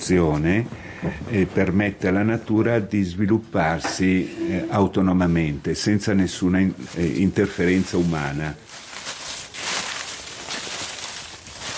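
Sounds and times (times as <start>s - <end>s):
speech: 0.0s - 8.8s
footsteps rustling dry fallen chestnut leaves: 6.7s - 11.7s.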